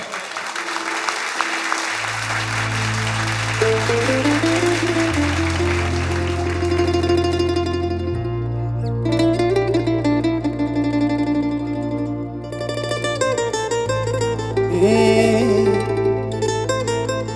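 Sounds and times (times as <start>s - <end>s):
audience applauding for a performer: 0.0s - 8.1s
sustained musical tones: 0.6s - 17.3s.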